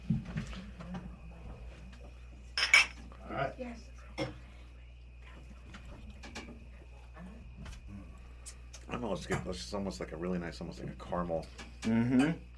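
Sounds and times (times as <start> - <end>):
glasses clinking in a toast: 2.6 - 3.0
speech: 3.6 - 4.4, 9.0 - 12.5.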